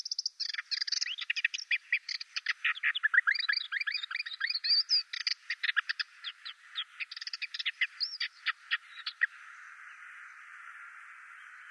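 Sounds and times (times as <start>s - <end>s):
Ménétries's warbler chattering into a buzzy rattle: 0.0s - 9.3s.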